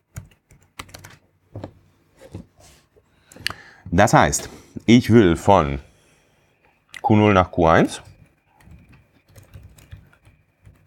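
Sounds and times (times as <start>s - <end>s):
typing on a computer keyboard: 0.1s - 1.2s, 8.0s - 10.8s
speech: 3.9s - 5.9s, 7.1s - 8.1s.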